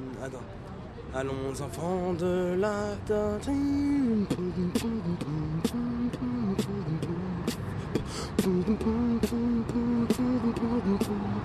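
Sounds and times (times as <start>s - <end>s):
speech: 0.2s - 11.4s
man beatboxing an anthem: 3.5s - 11.4s.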